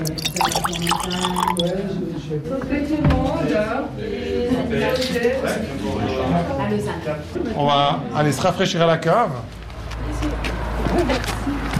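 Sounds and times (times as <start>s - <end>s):
Grand Chasselas wine poured into a small glass: 0.0s - 1.7s
speech: 0.4s - 9.6s, 11.0s - 11.6s.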